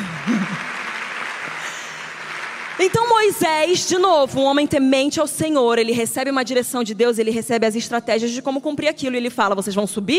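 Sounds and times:
congregation applause at a church service: 0:00.0 - 0:04.2
speech: 0:02.8 - 0:10.1.

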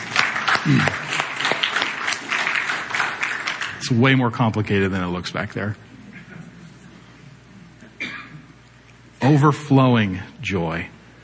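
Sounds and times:
audience applause: 0:00.0 - 0:04.1
speech: 0:00.6 - 0:01.0, 0:03.9 - 0:05.9, 0:09.3 - 0:11.0.

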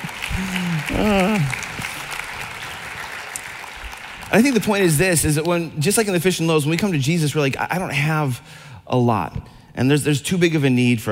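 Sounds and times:
audience applause: 0:00.0 - 0:05.2
speech: 0:00.4 - 0:01.6, 0:04.3 - 0:11.1.

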